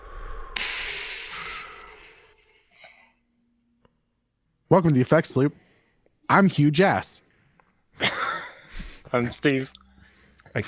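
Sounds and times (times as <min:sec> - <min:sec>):
slow exhale after a deep breath: 0:00.0 - 0:03.2
speech: 0:04.7 - 0:05.7, 0:06.3 - 0:07.3, 0:09.1 - 0:09.8.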